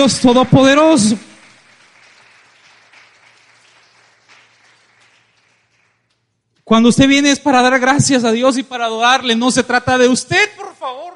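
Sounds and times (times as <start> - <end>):
speech: 0.0 - 1.3, 6.7 - 11.1
audience applauding: 0.0 - 6.3.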